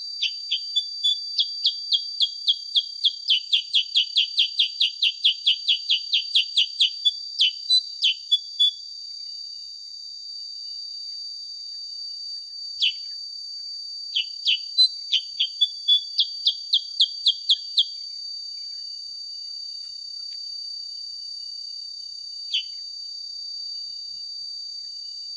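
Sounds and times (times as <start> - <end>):
sooty-headed bulbul song of sharp downslurred chirps: 0.0 - 8.8, 12.8 - 13.1, 14.2 - 18.0, 22.5 - 22.8.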